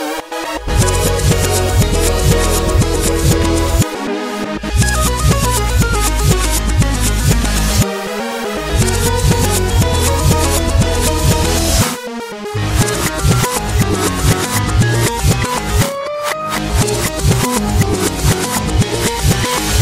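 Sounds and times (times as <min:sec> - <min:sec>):
rage music: 0:00.1 - 0:19.8.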